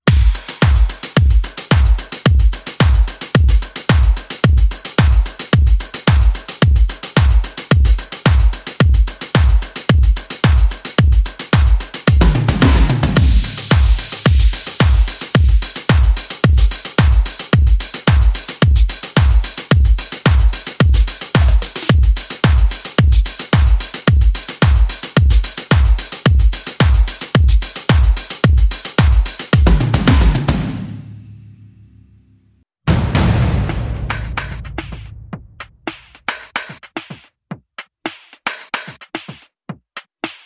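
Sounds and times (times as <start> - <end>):
percussion: 0.0 - 32.0, 32.9 - 40.4
sound effects: 12.4 - 15.0, 32.9 - 35.4.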